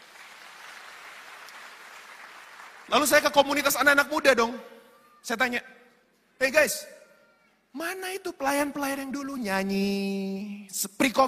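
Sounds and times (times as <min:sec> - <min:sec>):
audience applause: 0:00.0 - 0:03.1
speech: 0:02.9 - 0:05.8, 0:06.4 - 0:07.0, 0:07.7 - 0:11.2.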